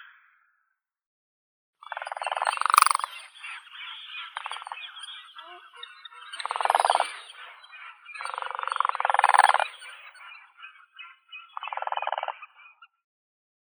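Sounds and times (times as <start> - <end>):
demoiselle crane Anthropoides virgo calling: 1.8 - 12.8.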